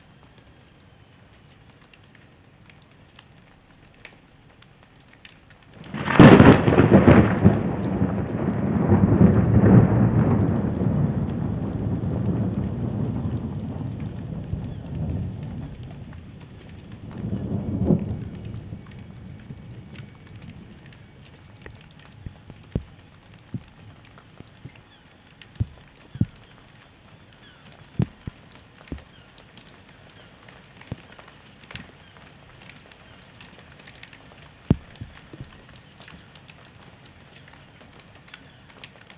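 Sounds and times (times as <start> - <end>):
thunder: 5.8 - 23.9.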